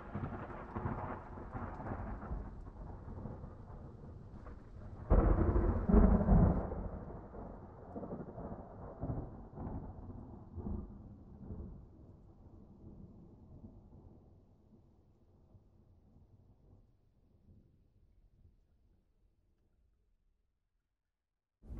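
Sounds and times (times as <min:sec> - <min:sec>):
thunder on an island: 0:00.0 - 0:14.3.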